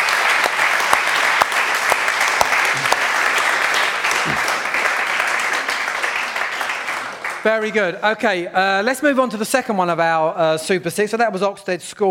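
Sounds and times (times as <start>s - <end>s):
audience applause: 0.0s - 7.8s
speech: 7.4s - 12.0s.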